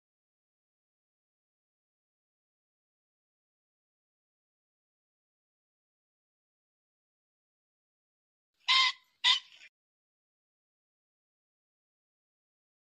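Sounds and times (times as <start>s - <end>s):
pheasant squawking: 8.7s - 9.7s.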